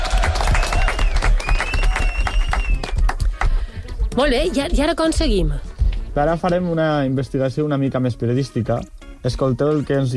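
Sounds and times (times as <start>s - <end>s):
applause: 0.0s - 3.7s
speech: 4.2s - 10.1s.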